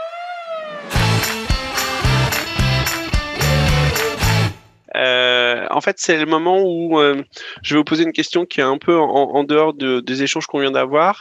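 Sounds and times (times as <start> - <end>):
siren in podcast jingle: 0.0 - 2.4
podcast jingle: 0.8 - 5.4
speech: 5.8 - 11.1.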